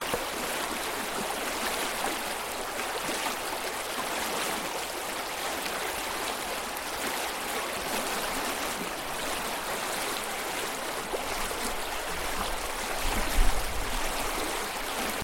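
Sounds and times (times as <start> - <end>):
liquid: 0.0 - 15.2.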